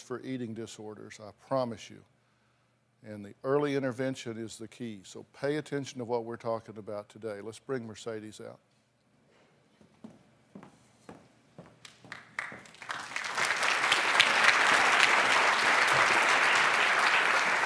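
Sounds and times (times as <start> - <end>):
speech: 0.0 - 2.2, 3.0 - 8.7
audience applause: 12.0 - 17.6.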